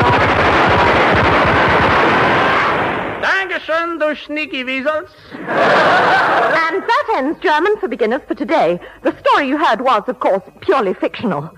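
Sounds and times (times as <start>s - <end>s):
machine gun fire sound effect in a comedy sketch: 0.0s - 3.4s
speech: 3.8s - 11.5s
laughter: 5.3s - 7.2s.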